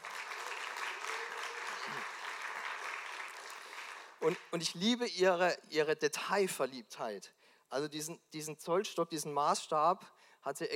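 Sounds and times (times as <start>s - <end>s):
audience applause: 0.0s - 4.5s
speech: 4.2s - 10.7s.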